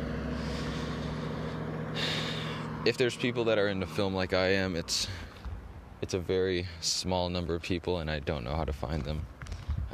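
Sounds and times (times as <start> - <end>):
hissing road noise: 0.0 - 9.9
truck passing in the woods, engine rumble: 0.0 - 9.9
speech: 2.8 - 5.3, 6.0 - 9.9.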